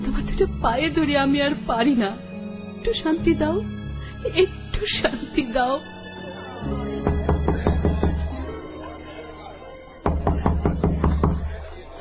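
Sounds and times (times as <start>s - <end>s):
speech: 0.4s - 5.9s
knocking on a door: 7.0s - 8.4s, 10.1s - 11.6s.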